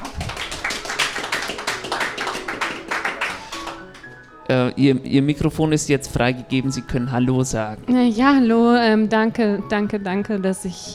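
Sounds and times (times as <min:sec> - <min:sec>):
audience applause: 0:00.0 - 0:04.3
speech: 0:04.8 - 0:10.9.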